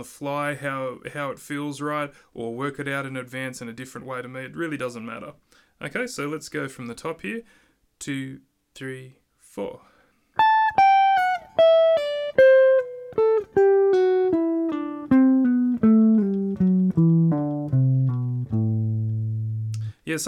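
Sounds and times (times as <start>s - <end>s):
speech: 0.0s - 9.9s
jazz guitar playing a slurred descending scale: 10.4s - 19.9s.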